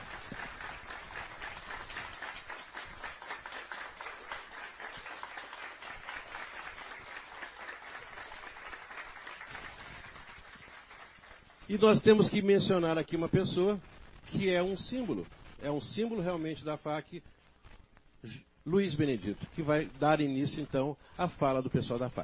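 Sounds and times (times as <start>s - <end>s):
audience applause: 0.0s - 12.2s
speech: 11.7s - 17.4s, 18.2s - 22.2s.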